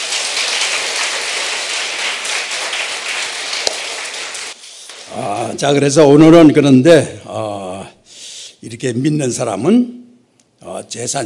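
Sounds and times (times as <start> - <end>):
audience clapping: 0.0 - 5.5
speech: 5.6 - 7.6, 8.6 - 10.0, 10.7 - 11.2.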